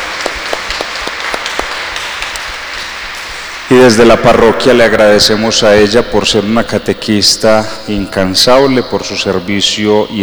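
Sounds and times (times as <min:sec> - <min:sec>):
applause: 0:00.0 - 0:04.8
speech: 0:03.7 - 0:10.2.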